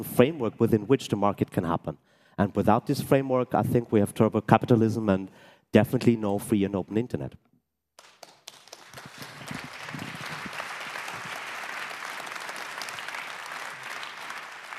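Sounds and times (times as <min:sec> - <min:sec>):
speech: 0:00.0 - 0:07.5
audience applause: 0:08.0 - 0:14.7.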